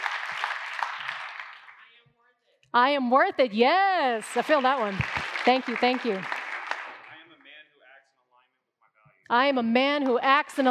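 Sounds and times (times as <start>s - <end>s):
round of applause from an audience at an affirmation session: 0.0s - 1.9s, 4.2s - 7.4s
speech: 2.8s - 6.4s, 9.3s - 10.6s.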